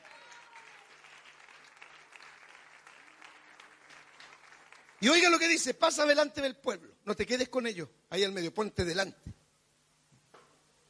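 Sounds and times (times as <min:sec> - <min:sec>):
audience clapping in praise: 0:00.0 - 0:05.7
speech: 0:05.0 - 0:09.4.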